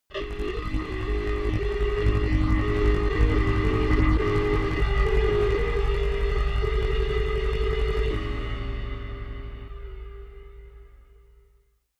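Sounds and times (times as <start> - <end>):
horror danger rumble: 0.1 - 11.5.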